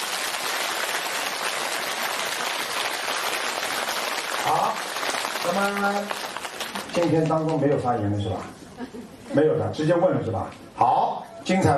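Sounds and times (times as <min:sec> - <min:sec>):
audience applause: 0:00.0 - 0:08.0
speech: 0:05.4 - 0:06.3, 0:06.9 - 0:11.7.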